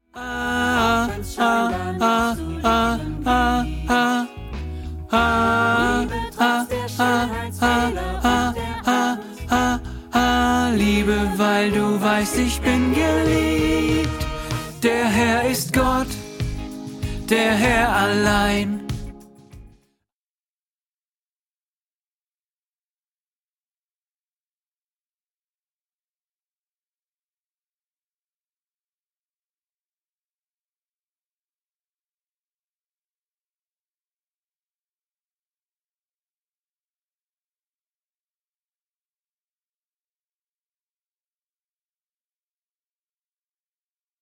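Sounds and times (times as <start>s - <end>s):
tenor voice singing a learning part: 0.2s - 4.4s, 5.1s - 16.3s, 17.2s - 18.9s.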